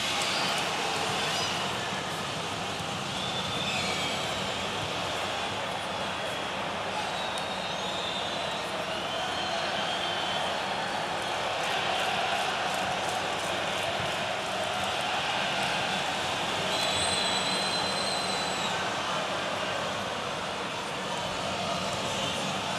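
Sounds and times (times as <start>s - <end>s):
crowd: 0.0s - 22.7s.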